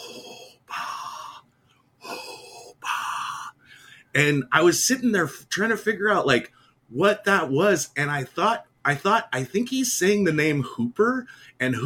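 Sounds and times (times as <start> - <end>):
person imitating Darth Vader's mechanical breathing: 0.0 - 1.4, 2.0 - 3.9
speech: 4.2 - 11.8.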